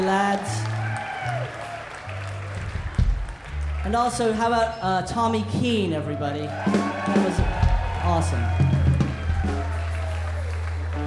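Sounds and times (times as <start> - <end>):
speech: 0.0 - 0.7, 3.8 - 8.8
audience applause: 0.0 - 4.8, 6.4 - 11.0.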